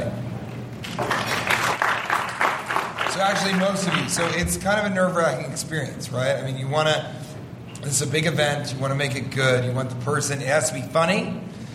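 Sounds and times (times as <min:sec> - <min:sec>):
audience applause: 0:00.8 - 0:04.4
speech: 0:03.2 - 0:07.2, 0:07.8 - 0:11.5.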